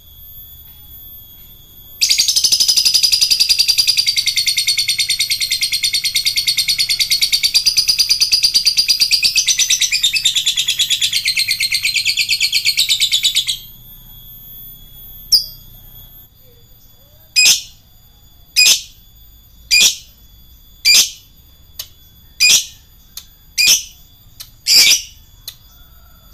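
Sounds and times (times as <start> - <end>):
lovebird singing in the ngekek style: 1.4 - 13.7, 15.1 - 15.8, 16.4 - 17.8, 18.6 - 19.0, 19.6 - 20.2, 20.8 - 26.3.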